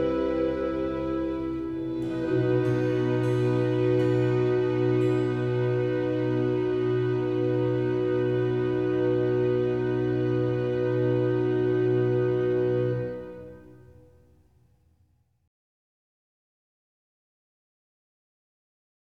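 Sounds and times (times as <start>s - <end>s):
slow organ concerto movement in G minor: 0.0s - 14.2s.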